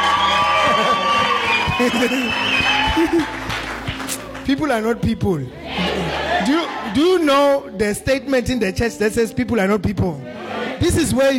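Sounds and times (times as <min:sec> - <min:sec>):
whoops and laughter: 0:00.0 - 0:03.5
church audience clapping: 0:00.0 - 0:05.1
speech: 0:01.8 - 0:03.5, 0:04.5 - 0:05.6, 0:06.4 - 0:11.3
many overlapping voices: 0:05.4 - 0:07.6, 0:10.2 - 0:11.0.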